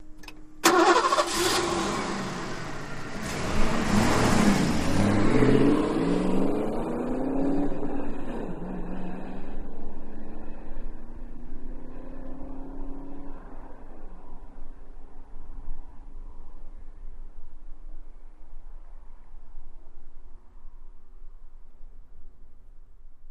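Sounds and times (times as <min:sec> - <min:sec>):
Mustang engine starting: 0:00.0 - 0:14.4
Mustang ignition click: 0:00.2 - 0:01.4.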